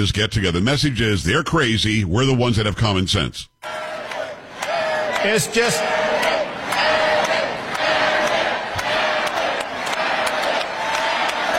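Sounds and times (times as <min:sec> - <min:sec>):
speech: 0:00.0 - 0:03.8, 0:05.2 - 0:07.0
crowd at a Texas gathering chanting Abbott: 0:03.6 - 0:11.5
steady rhythmic clapping: 0:03.6 - 0:11.5.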